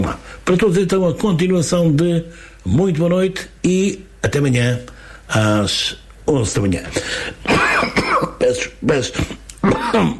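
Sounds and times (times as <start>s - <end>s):
speech: 0.1s - 10.1s
harsh coughing and throat clearing after choking: 7.4s - 10.1s.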